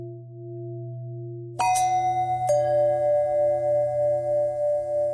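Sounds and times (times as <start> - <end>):
long bell ringing: 1.6 - 5.1.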